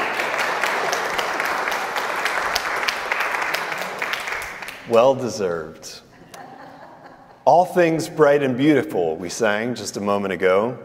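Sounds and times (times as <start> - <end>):
audience clapping: 0.0 - 5.2
speech: 4.9 - 6.1, 7.4 - 10.8
laughter: 6.1 - 7.5.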